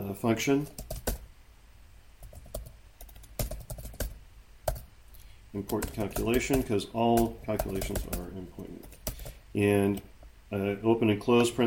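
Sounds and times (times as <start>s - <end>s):
speech: 0.1s - 0.9s, 5.5s - 8.9s, 9.5s - 11.6s
fingers typing on a computer keyboard: 0.8s - 1.2s, 2.2s - 4.9s, 5.6s - 9.4s.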